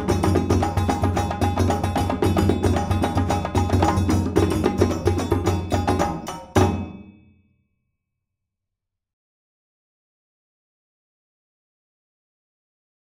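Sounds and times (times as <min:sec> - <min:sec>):
djembe drumming: 0:00.0 - 0:07.1.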